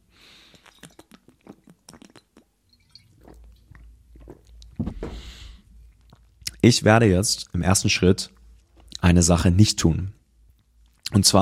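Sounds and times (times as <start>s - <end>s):
wet mouth clicks and smacks: 0.5s - 4.8s, 5.9s - 6.6s, 10.5s - 11.2s
gulp and swallowing of water: 0.5s - 6.6s
speech: 6.6s - 8.4s, 9.1s - 10.2s, 11.1s - 11.4s.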